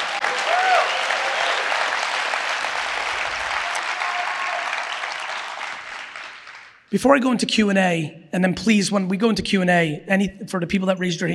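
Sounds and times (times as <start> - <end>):
audience clapping: 0.0 - 6.9
speech: 6.9 - 11.3.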